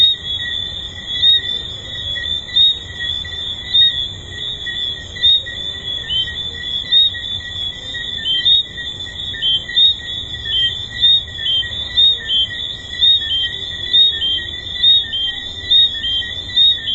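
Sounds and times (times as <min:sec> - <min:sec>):
tree frogs calling in a dense chorus at a resort: 0:00.0 - 0:16.9.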